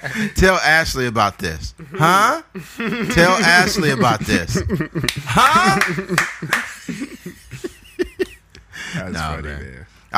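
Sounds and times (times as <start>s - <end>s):
speech: 0.1s - 6.6s, 8.9s - 10.1s
laughter: 2.6s - 8.7s
hand claps: 5.0s - 7.0s.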